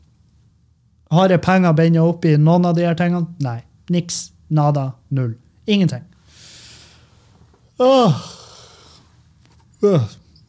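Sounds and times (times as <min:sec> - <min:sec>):
speech: 0:01.1 - 0:06.1, 0:07.8 - 0:08.4, 0:09.8 - 0:10.2
yawning: 0:07.8 - 0:09.1, 0:09.8 - 0:10.4.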